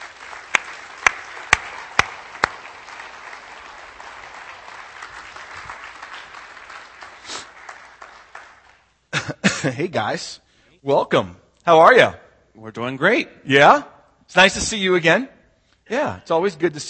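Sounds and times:
audience applause welcoming newly appointed missionaries to El Salvador: 0:00.0 - 0:09.0
sharp louder individual claps: 0:00.0 - 0:09.0
speech: 0:09.6 - 0:16.8.

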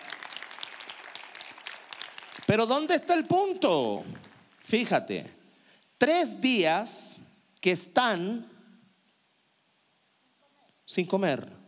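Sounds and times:
audience applause: 0:00.0 - 0:02.8
speech: 0:02.5 - 0:05.4, 0:06.0 - 0:08.5, 0:10.9 - 0:11.6.

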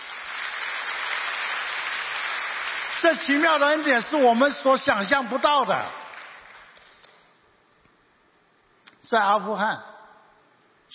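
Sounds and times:
audience applause: 0:00.0 - 0:03.9, 0:06.0 - 0:06.8
speech: 0:03.0 - 0:06.0, 0:09.1 - 0:09.9.

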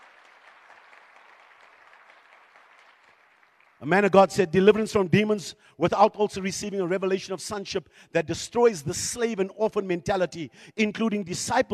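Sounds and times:
people clapping: 0:00.0 - 0:04.4
speech: 0:03.8 - 0:11.7.

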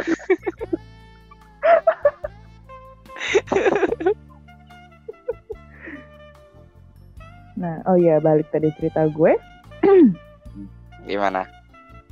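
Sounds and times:
laughter: 0:00.0 - 0:00.8, 0:01.6 - 0:02.3, 0:03.2 - 0:04.2, 0:05.1 - 0:06.0
hand clapping: 0:03.4 - 0:04.1
speech: 0:07.6 - 0:11.6.

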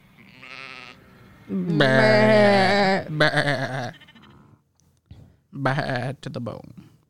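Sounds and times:
sheep bleating: 0:00.1 - 0:04.6
speech: 0:01.5 - 0:04.0, 0:05.6 - 0:06.9.

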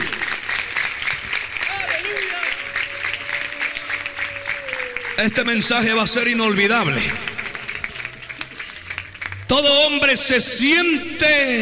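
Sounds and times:
audience applause: 0:00.0 - 0:11.0
speech: 0:05.2 - 0:07.3, 0:09.6 - 0:11.6.

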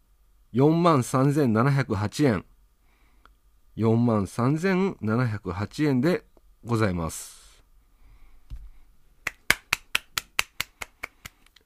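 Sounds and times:
speech: 0:00.5 - 0:02.5, 0:03.8 - 0:07.4
hand clapping: 0:09.2 - 0:11.6.

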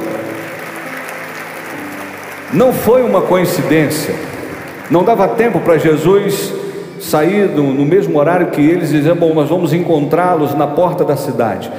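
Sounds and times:
audience applause: 0:00.0 - 0:06.3
speech: 0:02.5 - 0:11.7.

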